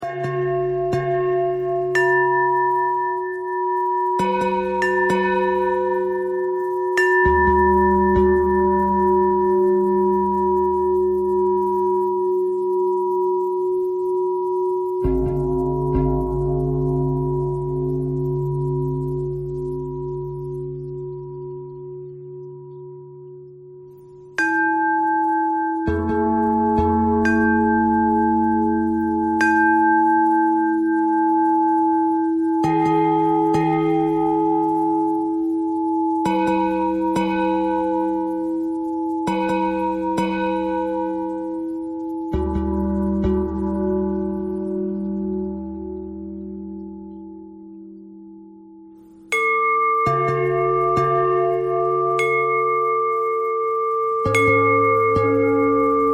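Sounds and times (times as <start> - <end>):
bell: 0.0 - 56.1.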